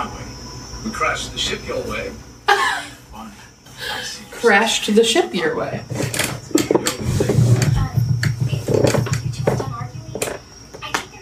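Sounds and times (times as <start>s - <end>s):
speech: 0.8s - 2.3s, 3.2s - 6.3s
squeaky chair: 5.7s - 10.9s.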